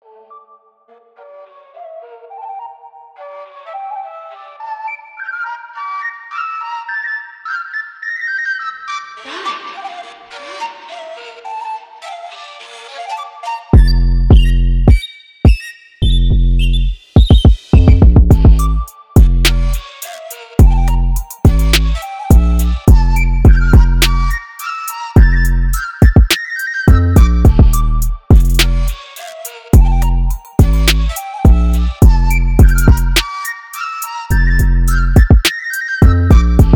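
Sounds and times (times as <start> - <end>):
flute melody: 0.0 - 17.1, 18.3 - 36.7
minimal trap beat: 17.2 - 24.6, 25.2 - 33.4, 34.6 - 36.7.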